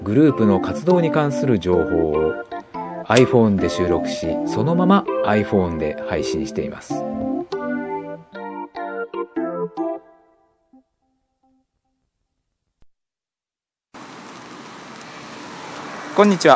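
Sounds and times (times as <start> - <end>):
speech: 0.1 - 2.5, 3.1 - 7.3, 16.2 - 16.5
short tonal jingle of plucked notes: 3.1 - 6.3
sudden rain falling: 14.0 - 16.5.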